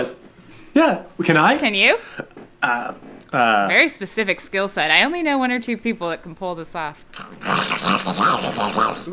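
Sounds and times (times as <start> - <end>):
speech: 0.8 - 9.1
person doing cartoon duck voice impression: 7.2 - 9.1.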